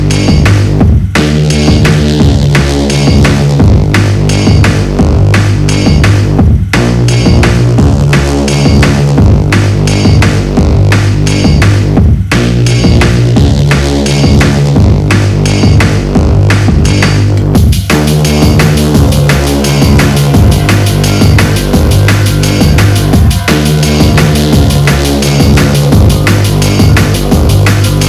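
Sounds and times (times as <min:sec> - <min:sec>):
abstract foley drums: 0:00.0 - 0:28.0.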